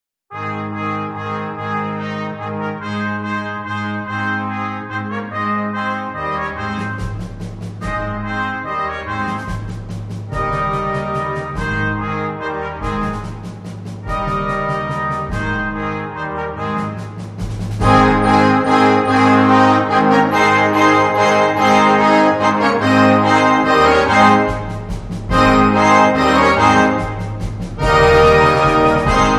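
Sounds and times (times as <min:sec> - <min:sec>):
Baroque intrada played by wind orchestra: 0:00.3 - 0:29.3.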